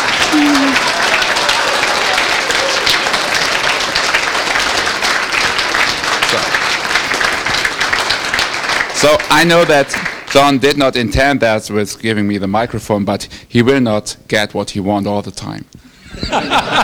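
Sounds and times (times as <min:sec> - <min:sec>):
audience applause: 0:00.0 - 0:10.6
speech: 0:09.0 - 0:16.8
laughter: 0:16.0 - 0:16.8.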